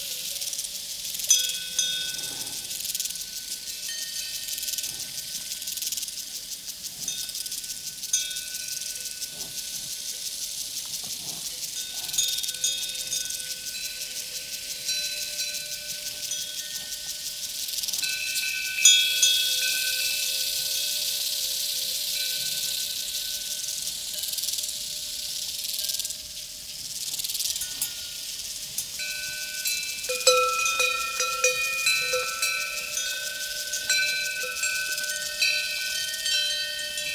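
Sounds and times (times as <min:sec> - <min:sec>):
cowbells on a prairie: 0:00.0 - 0:37.1
crickets chirping on a prairie: 0:00.0 - 0:37.1.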